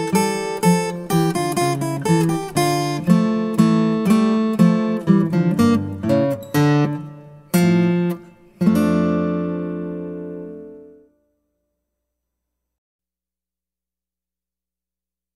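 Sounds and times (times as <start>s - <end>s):
guitar: 0.0s - 11.8s.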